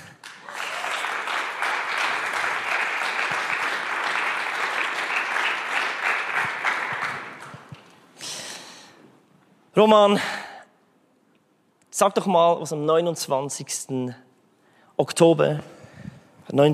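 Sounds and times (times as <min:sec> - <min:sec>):
audience applause: 0:00.0 - 0:08.0
speech: 0:09.8 - 0:10.4, 0:12.0 - 0:14.2, 0:15.0 - 0:15.8, 0:16.5 - 0:16.7.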